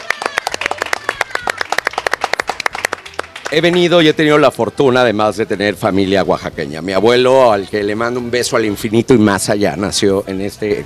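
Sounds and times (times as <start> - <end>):
applause: 0.0 - 4.2
speech: 3.5 - 10.8.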